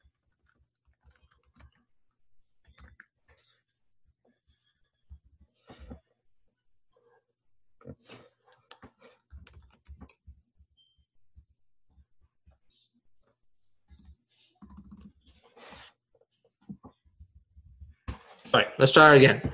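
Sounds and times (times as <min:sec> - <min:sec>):
quiet typing on a computer keyboard: 0:00.1 - 0:01.8, 0:09.3 - 0:10.2, 0:13.9 - 0:15.2
speech: 0:18.5 - 0:19.5.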